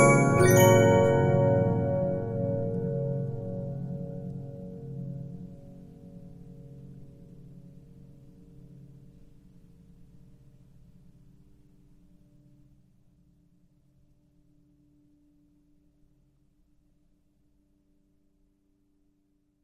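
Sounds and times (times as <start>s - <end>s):
Regina 15-inch disc music box: 0.0s - 4.0s.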